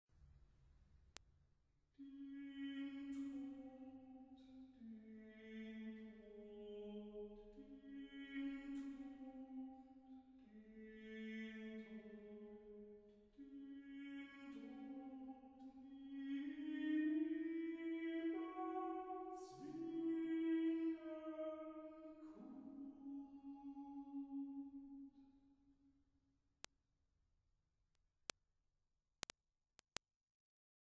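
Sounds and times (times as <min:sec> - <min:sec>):
single voice singing a chorale: 0:02.0 - 0:12.8, 0:13.4 - 0:25.0.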